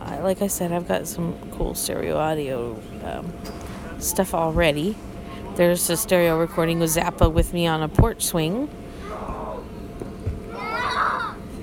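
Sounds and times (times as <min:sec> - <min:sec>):
speech: 0:00.2 - 0:09.2
children playing in a bounce house shouting and squealing: 0:09.0 - 0:09.7, 0:10.4 - 0:11.6.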